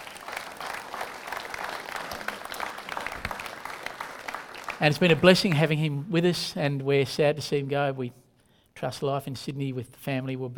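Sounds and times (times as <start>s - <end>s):
audience applause: 0.0s - 5.7s
speech: 4.8s - 8.2s, 8.8s - 10.5s.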